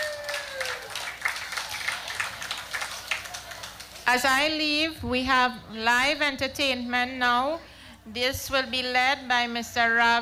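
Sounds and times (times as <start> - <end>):
audience applause: 0.0 - 4.1
speech: 4.1 - 10.2.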